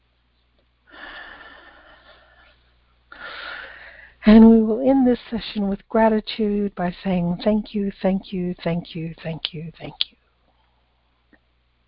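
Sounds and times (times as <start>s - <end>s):
deep breath at the close of a guided prayer session: 0.9s - 4.2s
speech: 5.0s - 10.1s.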